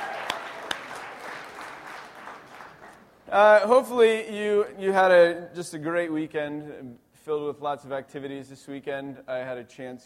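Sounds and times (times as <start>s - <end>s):
audience applause: 0.0s - 3.1s
speech: 3.3s - 10.0s.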